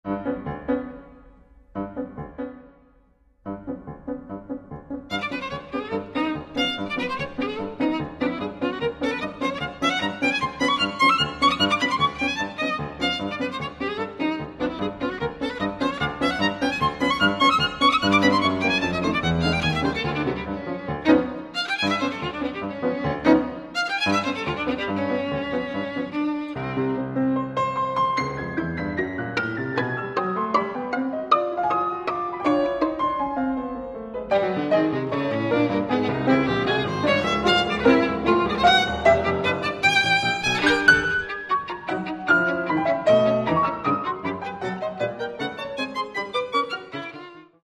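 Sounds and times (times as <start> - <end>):
violin and piano music: 0.0 - 47.6.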